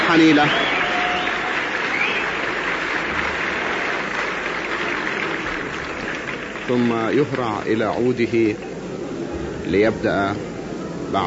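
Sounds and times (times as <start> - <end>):
large audience applauding at a 1956 concert: 0.0 - 8.7
speech: 0.1 - 0.8, 6.7 - 8.7, 9.7 - 10.5.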